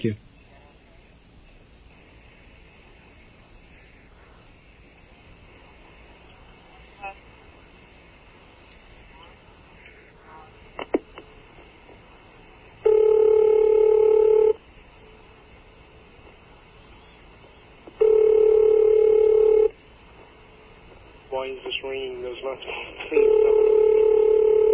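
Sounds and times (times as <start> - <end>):
telephone ringback tone: 12.8 - 14.6, 18.0 - 19.8, 23.2 - 24.7.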